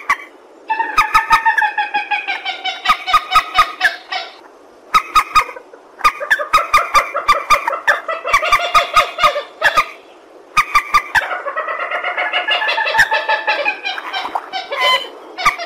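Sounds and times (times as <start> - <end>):
purple swamphen cackling: 0.0 - 15.6.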